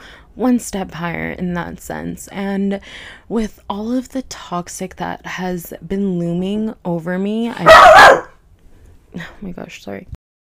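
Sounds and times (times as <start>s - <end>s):
speech: 0.4s - 8.3s, 9.1s - 10.2s
dog barking: 7.6s - 8.4s.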